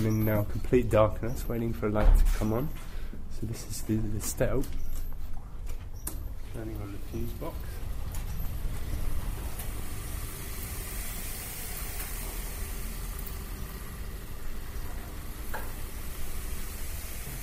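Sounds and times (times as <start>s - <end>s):
speech: 0.0s - 4.9s, 6.6s - 7.8s
spinning mechanical structure with whirling lights in a dance-floor room: 6.6s - 17.4s.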